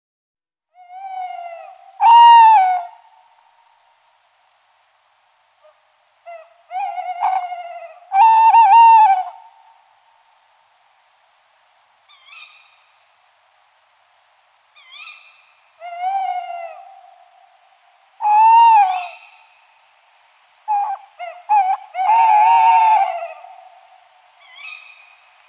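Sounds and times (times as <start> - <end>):
tawny owl calls: 0.7 - 3.2, 5.6 - 9.8, 12.1 - 13.0, 14.7 - 17.6, 18.2 - 19.8, 20.6 - 25.4.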